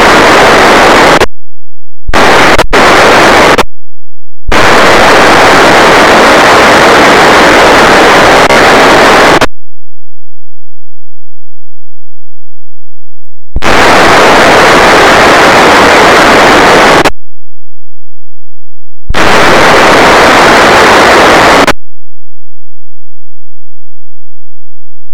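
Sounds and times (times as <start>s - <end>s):
encrypted P25 digital radio signal received as NBFM: 0.0s - 1.3s, 2.1s - 3.7s, 4.5s - 9.5s, 13.3s - 17.2s, 19.1s - 21.8s.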